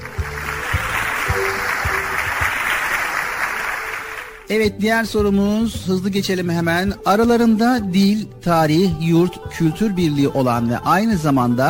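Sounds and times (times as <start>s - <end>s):
crowd clapping: 0.0s - 4.5s
speech: 4.5s - 11.6s.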